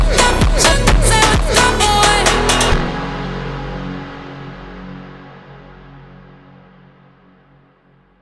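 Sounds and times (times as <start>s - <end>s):
phonk music: 0.0s - 5.0s.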